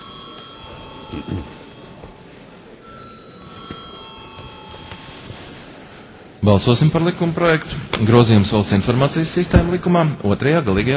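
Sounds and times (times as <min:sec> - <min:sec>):
parliament voting bell ringing: 0:00.0 - 0:05.4
speech: 0:01.1 - 0:01.6, 0:06.4 - 0:10.9.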